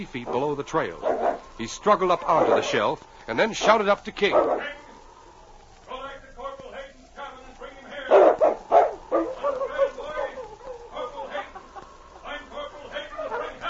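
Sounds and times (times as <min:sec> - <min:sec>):
speech: 0:00.0 - 0:04.8
large dog barking: 0:00.2 - 0:05.0, 0:07.9 - 0:11.6, 0:13.1 - 0:13.6
laughter: 0:07.4 - 0:13.6.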